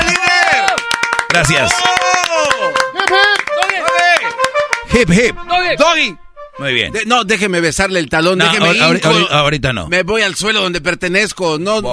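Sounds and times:
applause: 0.0 - 4.9
speech: 1.4 - 3.3, 4.9 - 11.9.

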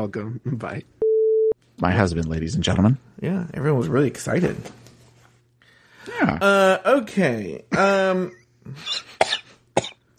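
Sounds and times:
speech: 0.0 - 1.0, 1.8 - 4.8, 6.0 - 9.2, 9.8 - 10.1
harsh breathy coughs: 7.7 - 10.1.

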